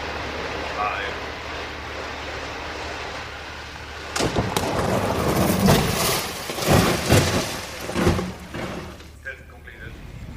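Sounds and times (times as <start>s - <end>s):
car crashing into ditch and embankment: 0.2s - 9.3s
rattling debris: 4.0s - 9.2s.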